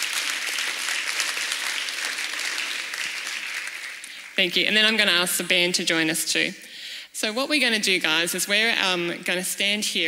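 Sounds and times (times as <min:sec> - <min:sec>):
audience applause: 0:00.0 - 0:04.4
speech: 0:04.4 - 0:10.0.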